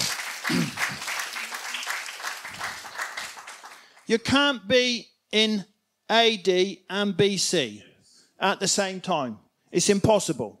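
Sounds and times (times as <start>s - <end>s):
audience applause: 0.0s - 4.0s
speech: 4.1s - 10.5s.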